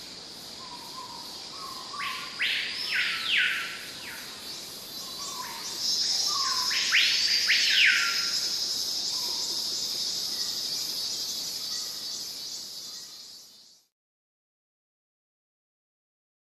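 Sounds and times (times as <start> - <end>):
cicadas in a forest giving a steady high hissing drone: 0.0 - 13.9.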